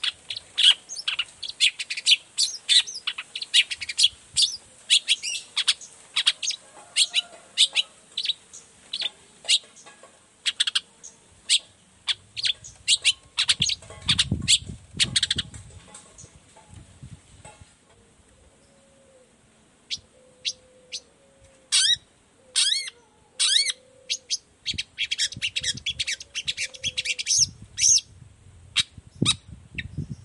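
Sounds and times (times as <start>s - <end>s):
long-tailed shrike scratchy chattering song: 0.0s - 16.4s, 21.7s - 22.0s, 22.6s - 28.1s, 28.8s - 30.2s.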